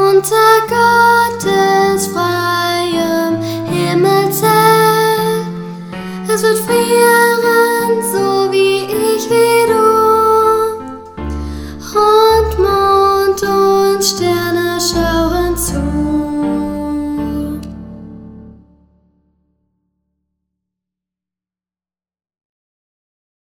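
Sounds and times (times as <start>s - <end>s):
person singing: 0.0s - 18.1s.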